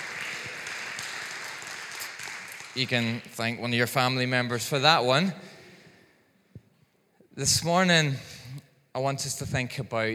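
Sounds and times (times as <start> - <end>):
church congregation applauding for a birthday: 0.0 - 3.4
speech: 2.8 - 5.5, 7.4 - 10.1.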